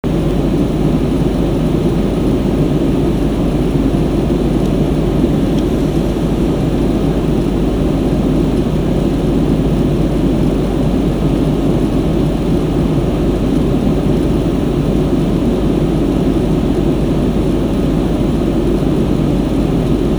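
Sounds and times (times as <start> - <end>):
air conditioner: 0.0 - 20.1.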